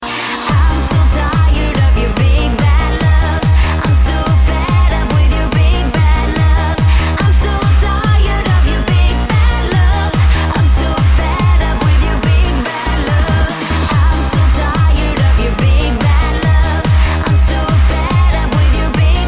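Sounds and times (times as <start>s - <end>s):
trance music: 0.0s - 19.2s.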